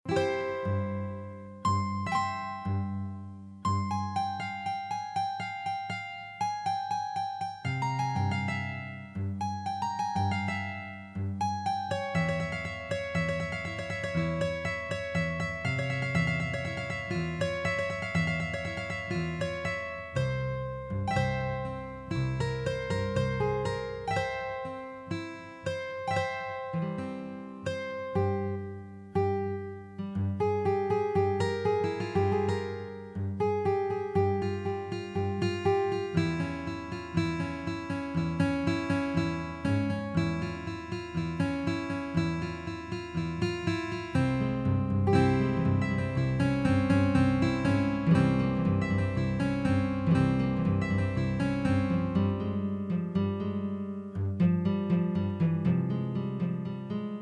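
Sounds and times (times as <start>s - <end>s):
guitar: 0.0s - 57.1s.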